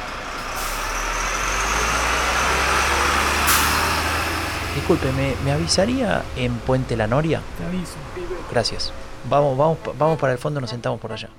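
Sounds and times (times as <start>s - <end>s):
city bus colectivo engine drone: 0.0s - 11.3s
speech: 4.9s - 11.3s.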